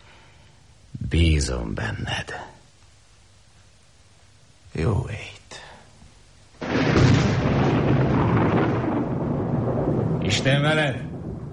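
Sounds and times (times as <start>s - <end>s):
speech: 1.1s - 2.5s, 4.8s - 5.4s, 10.4s - 11.1s
thunder rumbling: 6.6s - 11.5s.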